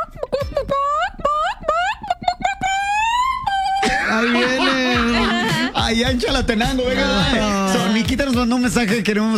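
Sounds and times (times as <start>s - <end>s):
person imitating chicken calls: 0.0s - 4.7s
laughter: 0.0s - 6.0s, 6.7s - 8.2s
speech: 5.9s - 9.3s.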